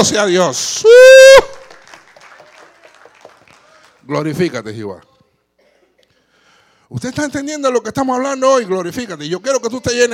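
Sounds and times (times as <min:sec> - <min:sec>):
speech: 0:00.0 - 0:01.5, 0:04.1 - 0:05.1, 0:06.9 - 0:10.1
audience applause: 0:01.6 - 0:04.0.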